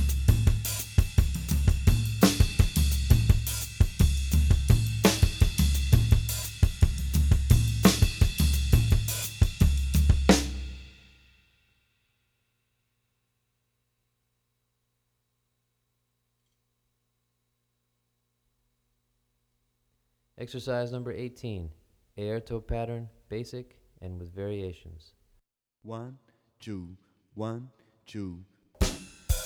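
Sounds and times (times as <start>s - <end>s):
drumset playing samba cruzado: 0.0s - 11.0s, 28.8s - 29.4s.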